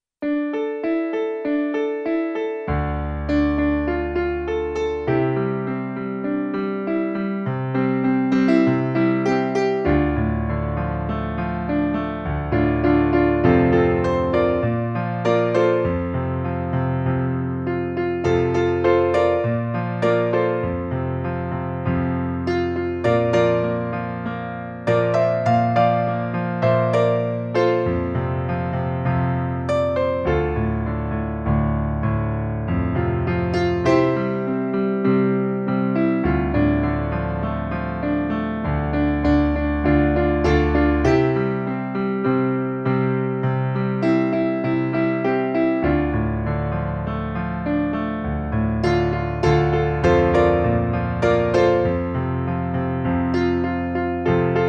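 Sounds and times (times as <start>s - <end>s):
piano: 0.0s - 54.6s.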